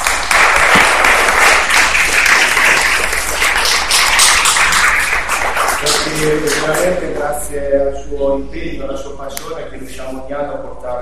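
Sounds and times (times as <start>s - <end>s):
audience applause: 0.0s - 6.9s
speech: 6.2s - 11.0s.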